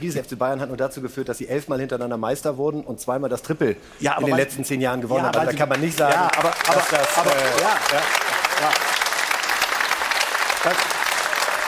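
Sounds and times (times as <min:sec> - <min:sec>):
speech: 0:00.0 - 0:08.9, 0:10.6 - 0:10.9
Munich crowd applause for FC Bayern's league titles: 0:05.2 - 0:11.6.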